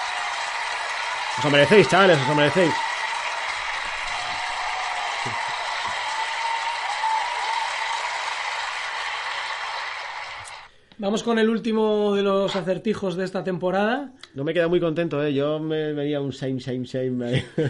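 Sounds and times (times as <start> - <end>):
applause: 0.0 - 10.7
speech: 1.4 - 2.9, 11.0 - 17.6.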